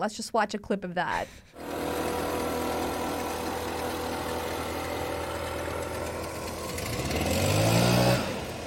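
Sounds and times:
speech: 0.0s - 1.6s
gas-powered leaf blowers: 1.5s - 8.6s.

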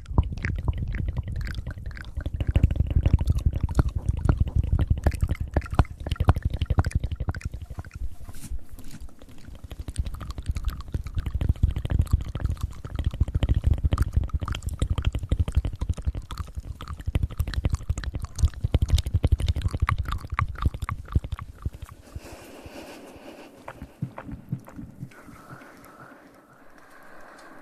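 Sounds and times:
fast wet mouth clicks, smacks and pops: 0.0s - 27.6s.

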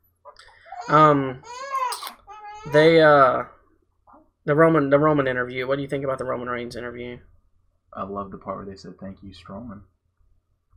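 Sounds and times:
fussy baby girl crying: 0.6s - 3.1s
speech: 0.9s - 1.6s, 2.6s - 3.6s, 4.4s - 7.3s, 7.9s - 9.9s.

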